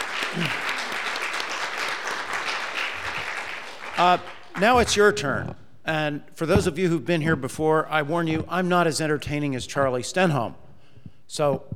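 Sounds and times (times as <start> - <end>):
audience applause for a panel: 0.0 - 5.2
speech: 0.3 - 0.7, 4.0 - 10.6, 11.3 - 11.7.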